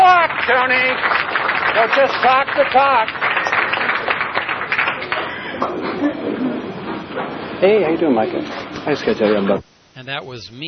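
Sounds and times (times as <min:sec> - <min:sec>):
audience clapping: 0:00.0 - 0:05.9
speech: 0:00.5 - 0:03.2, 0:07.6 - 0:10.6.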